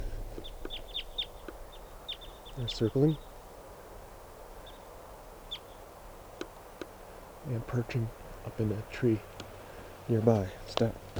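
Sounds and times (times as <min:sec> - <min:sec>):
type 2 crossbill calls: 0:00.0 - 0:11.1
speech: 0:02.6 - 0:03.3, 0:07.5 - 0:09.4, 0:10.1 - 0:11.1.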